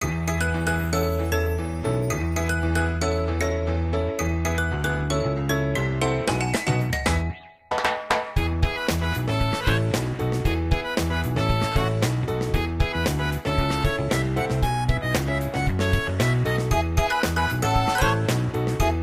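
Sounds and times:
login background music: 0:00.0 - 0:19.0.

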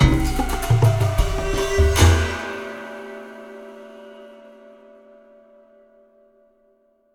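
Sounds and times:
combat music loop: 0:00.0 - 0:02.4.

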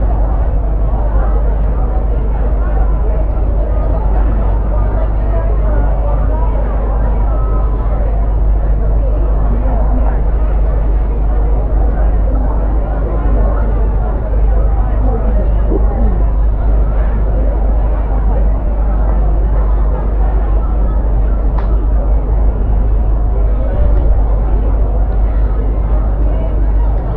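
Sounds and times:
crowd ambience: 0:00.0 - 0:27.1.

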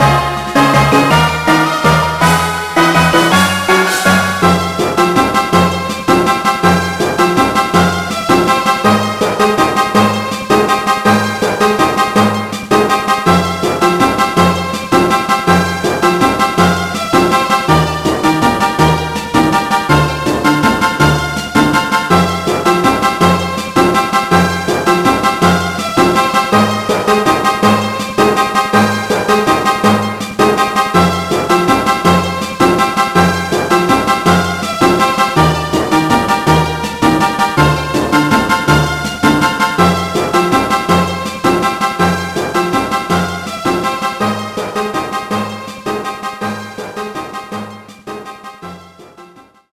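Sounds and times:
battle clear fanfare: 0:00.0 - 0:11.4, 0:12.0 - 0:48.8.

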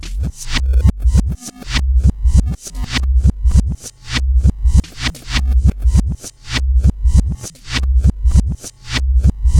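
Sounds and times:
hip-hop loop through speaker-mic with reverb: 0:00.0 - 0:09.5.

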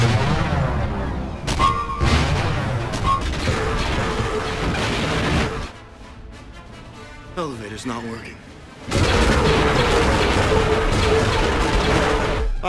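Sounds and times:
artillery batteries firing in a full attack: 0:00.0 - 0:05.8, 0:08.8 - 0:12.6
speech: 0:07.8 - 0:09.0.

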